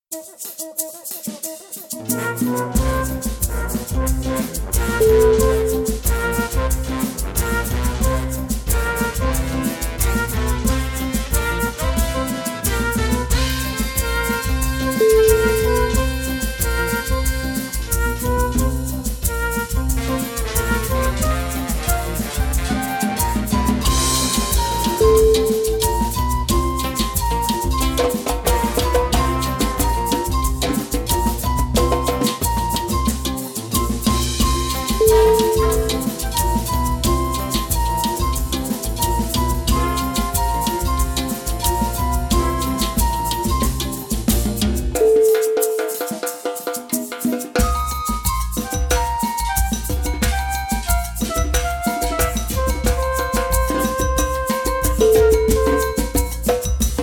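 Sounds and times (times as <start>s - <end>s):
samba music: 0.0s - 57.0s.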